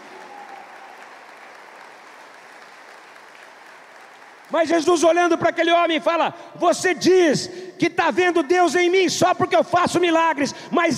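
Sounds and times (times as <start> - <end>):
audience applauding: 0.0 - 5.0
speech: 4.5 - 10.9.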